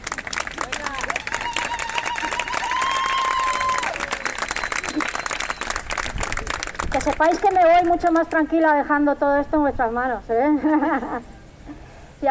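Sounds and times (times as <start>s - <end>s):
audience applause: 0.0s - 8.3s
speech: 7.0s - 11.3s.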